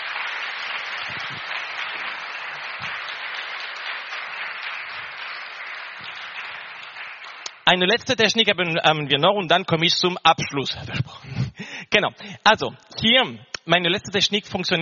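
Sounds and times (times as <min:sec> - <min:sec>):
audience applause: 0:00.0 - 0:07.6
speech: 0:07.7 - 0:11.3, 0:11.9 - 0:14.8.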